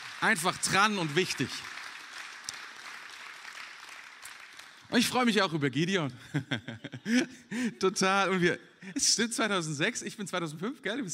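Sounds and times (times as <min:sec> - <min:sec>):
sharp individual claps: 0:00.0 - 0:04.9
audience applause: 0:00.0 - 0:05.2
speech: 0:00.2 - 0:01.8, 0:04.9 - 0:11.1
laughter: 0:06.2 - 0:07.7.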